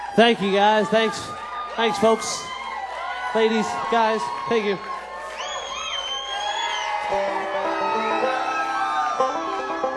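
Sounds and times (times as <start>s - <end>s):
audience screaming: 0.0s - 9.9s
speech: 0.2s - 2.5s, 3.3s - 4.9s
audience clapping: 3.0s - 9.1s.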